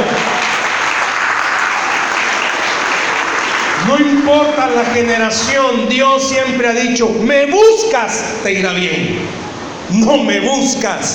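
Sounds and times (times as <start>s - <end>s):
sustained audience applause: 0.0s - 4.9s
speech: 4.0s - 11.1s.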